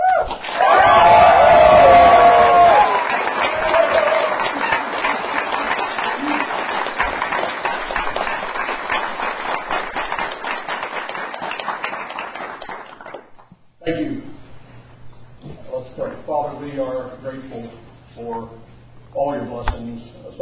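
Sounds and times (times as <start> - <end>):
congregation cheering to welcome their pastor: 0.0 - 11.4
congregation applauding to welcome their pastor: 0.0 - 13.5.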